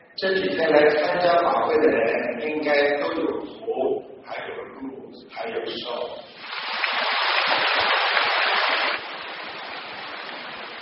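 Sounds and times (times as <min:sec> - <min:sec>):
speech: 0:00.2 - 0:06.7
crowd applauding enthusiastically: 0:06.6 - 0:10.7.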